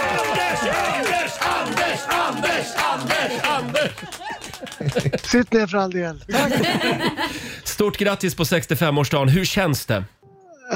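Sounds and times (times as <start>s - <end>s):
audience applause: 0.0s - 5.4s
laughter: 0.0s - 5.5s, 6.3s - 7.6s
speech: 1.4s - 10.7s.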